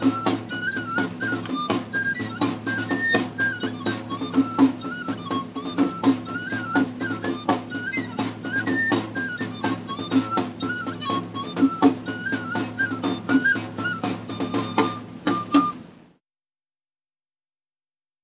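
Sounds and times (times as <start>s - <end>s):
tabor drum playing a jota: 0.0s - 16.0s
flute playing a jota: 0.0s - 16.1s.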